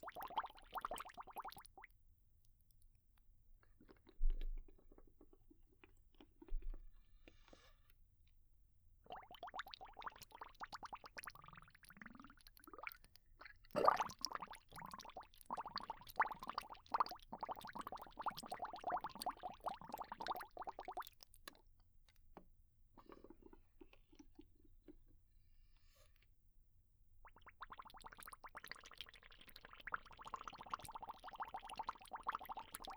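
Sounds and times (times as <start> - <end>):
bubbles: 0.0 - 1.9, 9.0 - 21.2, 27.2 - 32.9.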